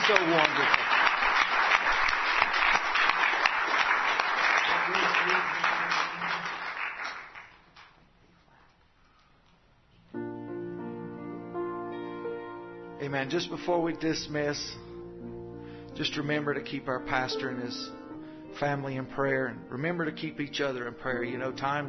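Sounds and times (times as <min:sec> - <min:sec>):
audience clapping in praise: 0:00.0 - 0:08.0
speech: 0:00.1 - 0:00.8, 0:13.2 - 0:14.8, 0:16.0 - 0:18.0, 0:18.6 - 0:21.8.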